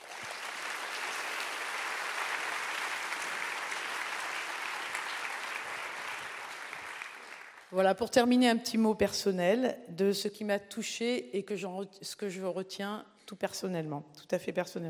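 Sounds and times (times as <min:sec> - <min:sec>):
audience applause: 0:00.0 - 0:07.8
speech: 0:07.7 - 0:14.8.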